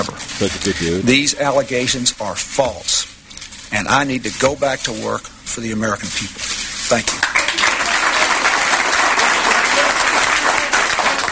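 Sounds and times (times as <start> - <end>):
speech: 0.0 - 3.1, 3.7 - 7.2
crowd applause and cheering: 7.2 - 11.3.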